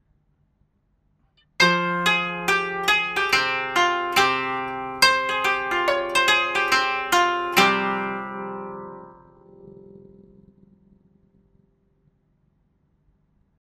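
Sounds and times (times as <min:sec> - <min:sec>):
koto: 0:01.6 - 0:11.4.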